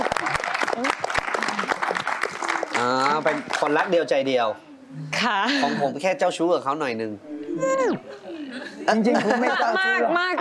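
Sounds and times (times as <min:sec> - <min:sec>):
audience applause: 0:00.0 - 0:03.8
speech: 0:02.8 - 0:08.2, 0:08.9 - 0:10.3
laughter: 0:08.5 - 0:10.3.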